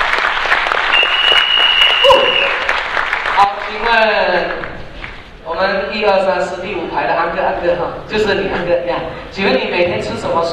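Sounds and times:
audience at a motivational lecture clapping: 0.0s - 5.3s
faint high whistle: 0.9s - 2.7s
speech: 5.6s - 10.5s.

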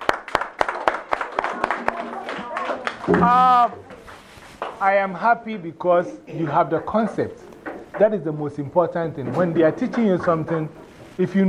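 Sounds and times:
class clapping for themselves: 0.0s - 5.0s
speech: 3.1s - 3.9s, 4.8s - 11.4s.

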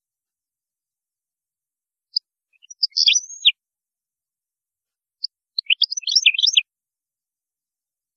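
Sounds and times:
European goldfinch twittering: 2.6s - 3.5s, 5.6s - 6.6s.

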